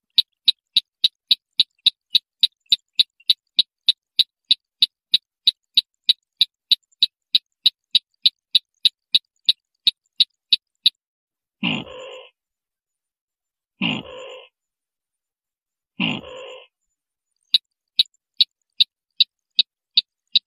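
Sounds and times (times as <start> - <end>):
white-breasted waterhen train of sharp clicks: 0.0 - 11.0, 17.5 - 20.4.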